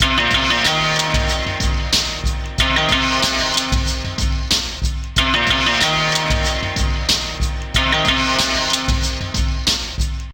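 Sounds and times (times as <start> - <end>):
dulcimer: 0.0 - 10.2.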